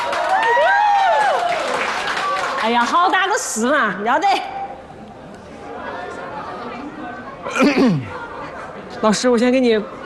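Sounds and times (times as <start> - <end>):
audience applause: 0.0 - 3.1
speech: 2.6 - 4.6, 7.5 - 8.2, 9.0 - 10.0.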